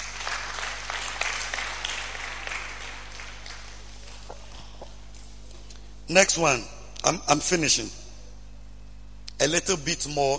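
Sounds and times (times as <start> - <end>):
gathering clapping during a sermon: 0.0 - 5.3
low steady hum: 0.0 - 10.3
speech: 6.1 - 8.0, 9.4 - 10.3.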